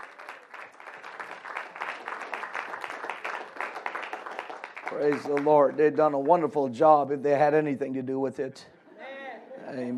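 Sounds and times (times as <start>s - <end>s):
audience applause: 0.0s - 6.4s
speech: 4.9s - 8.7s, 9.7s - 9.9s.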